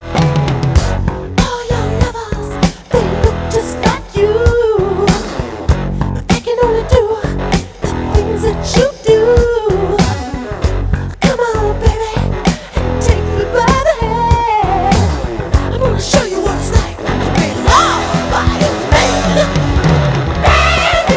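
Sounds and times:
vocals: 0:01.1 - 0:21.1.

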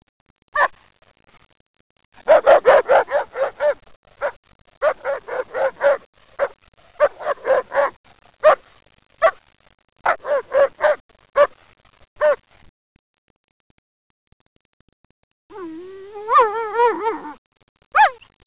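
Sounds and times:
dog: 0:02.2 - 0:08.6, 0:09.2 - 0:09.4, 0:10.0 - 0:11.5, 0:12.2 - 0:12.4, 0:15.5 - 0:18.3.

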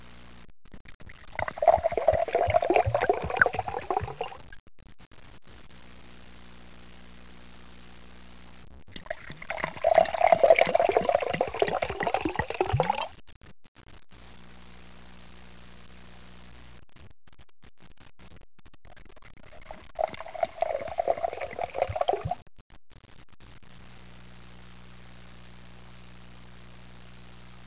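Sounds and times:
liquid pouring: 0:01.2 - 0:04.5, 0:09.0 - 0:13.1, 0:19.5 - 0:22.4.

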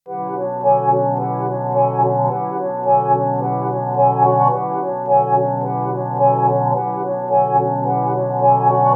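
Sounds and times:
melody: 0:00.1 - 0:08.9.

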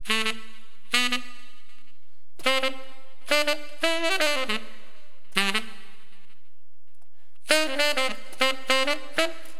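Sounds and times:
tenor wind instrument: 0:00.0 - 0:06.6, 0:07.4 - 0:09.5.

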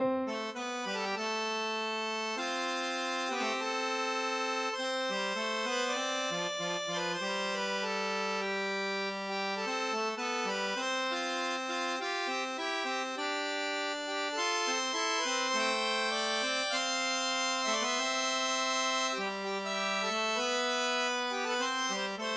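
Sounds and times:
ballad: 0:00.0 - 0:22.3.

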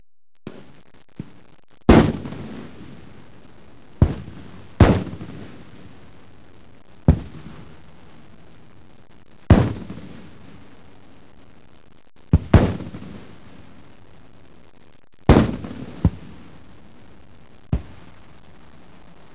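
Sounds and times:
artillery fire: 0:01.2 - 0:03.3, 0:04.0 - 0:06.0, 0:07.1 - 0:08.2, 0:09.5 - 0:10.7, 0:12.3 - 0:13.9, 0:15.3 - 0:17.0.

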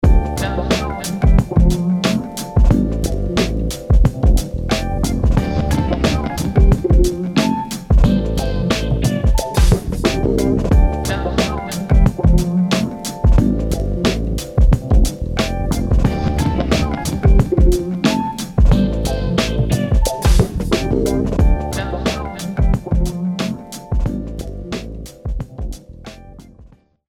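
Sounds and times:
abstract hip hop music: 0:00.0 - 0:26.5.

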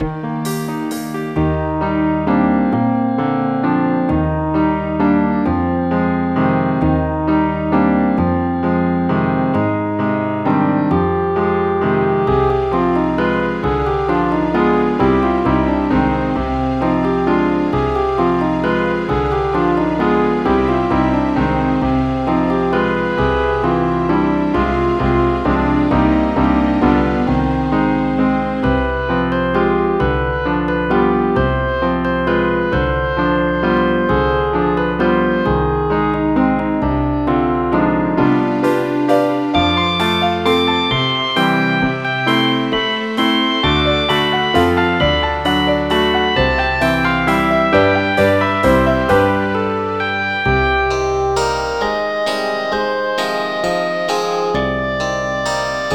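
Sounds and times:
waltz music: 0:00.0 - 0:55.9.

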